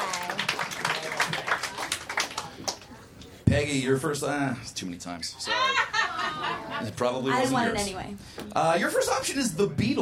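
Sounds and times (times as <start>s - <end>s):
audience clapping along at a live music event: 0.0s - 3.0s
speech: 3.6s - 9.9s
laughter: 5.5s - 7.0s.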